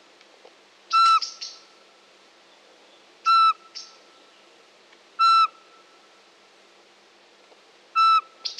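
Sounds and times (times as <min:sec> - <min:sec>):
Eurasian pygmy owl whistling: 0:00.9 - 0:01.6, 0:03.2 - 0:04.0, 0:05.2 - 0:05.6, 0:08.0 - 0:08.5.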